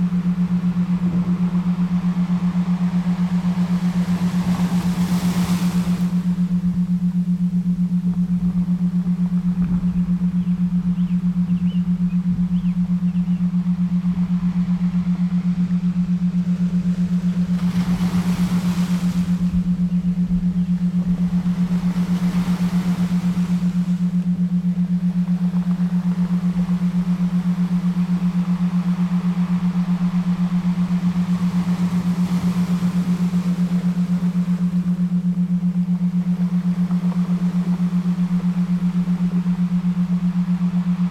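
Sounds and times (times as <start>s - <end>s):
7.83 Hz Schumann resonance isochronic tones: 0.0s - 41.1s
relaxing ocean sounds: 0.0s - 41.1s.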